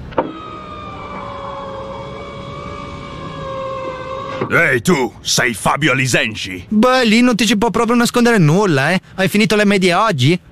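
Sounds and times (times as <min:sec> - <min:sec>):
car pulling up alongside: 0:00.0 - 0:05.1
speech: 0:04.4 - 0:10.4.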